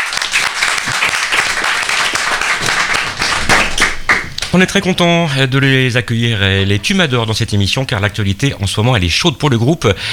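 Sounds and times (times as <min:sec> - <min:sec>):
audience applause: 0:00.0 - 0:04.5
speech: 0:04.5 - 0:10.1.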